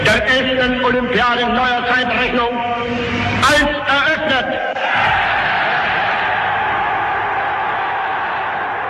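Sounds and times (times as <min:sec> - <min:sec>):
speech: 0:00.2 - 0:03.7
massive crowd cheering at the 1936 Olympic Games opening in Berlin's Olympic Stadium: 0:04.6 - 0:08.8.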